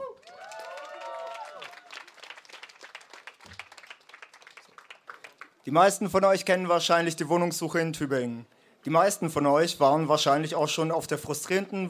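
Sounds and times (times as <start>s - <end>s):
audience applause: 0.0s - 5.7s
speech: 5.7s - 11.8s.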